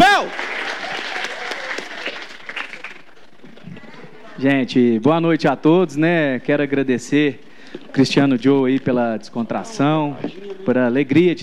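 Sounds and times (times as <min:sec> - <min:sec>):
audience applause: 0:00.0 - 0:03.4
faint crowd voices: 0:01.2 - 0:11.4
speech: 0:04.4 - 0:11.4.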